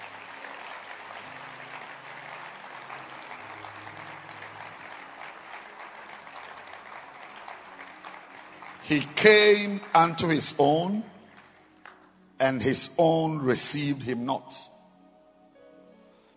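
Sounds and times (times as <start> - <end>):
audience clapping hands: 0.0 - 13.8
low sustained musical tones: 0.0 - 16.3
speech: 8.9 - 11.1, 12.4 - 14.7.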